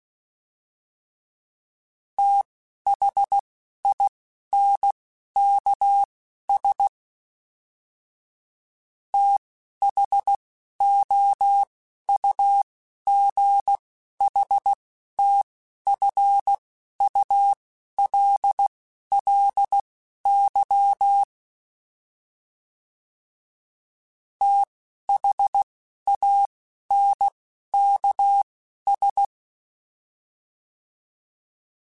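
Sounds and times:
Morse code CW code groups: 2.2 - 6.9, 9.2 - 21.3, 24.4 - 29.3.

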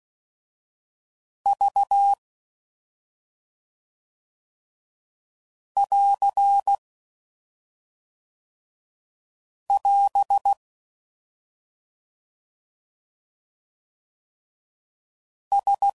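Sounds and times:
Morse code CW code groups at 5 WPM: 1.5 - 2.2, 5.8 - 6.8, 9.7 - 10.6, 15.5 - 15.9.

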